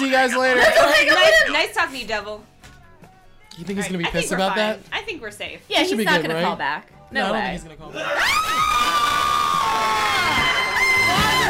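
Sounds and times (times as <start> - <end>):
speech: 0.1 - 2.5, 3.6 - 9.1
people screaming: 8.0 - 11.4.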